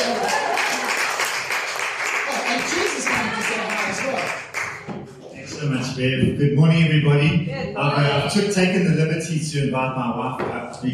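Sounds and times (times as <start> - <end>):
audience clapping: 0.0 - 5.5
speech: 6.0 - 10.9.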